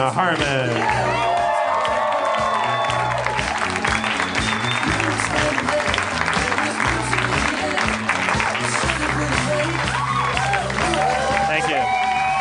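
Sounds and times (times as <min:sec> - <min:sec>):
speech: 0:00.0 - 0:01.3
audience applause: 0:00.0 - 0:12.3
cheers and whoops: 0:00.8 - 0:05.4, 0:09.7 - 0:12.3.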